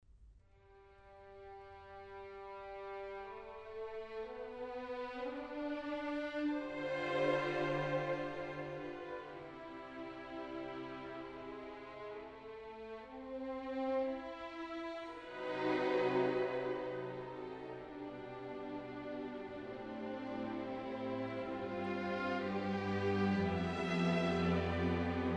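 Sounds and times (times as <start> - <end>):
serenade for strings in E minor: 1.5 - 25.3.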